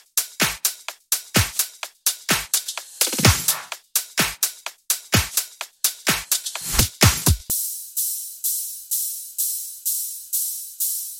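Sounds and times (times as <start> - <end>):
progressive house music: 0.4 - 7.6.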